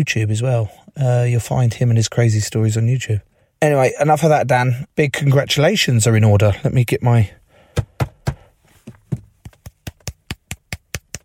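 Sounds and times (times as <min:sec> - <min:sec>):
speech: 0:00.0 - 0:07.4
taps imitating hand clapping: 0:09.1 - 0:11.2.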